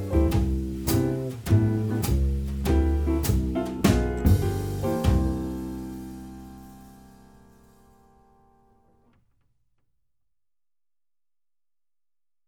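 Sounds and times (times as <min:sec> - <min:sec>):
drums: 0:00.0 - 0:08.1
blues piano in C: 0:00.0 - 0:09.1
bass: 0:00.0 - 0:09.3.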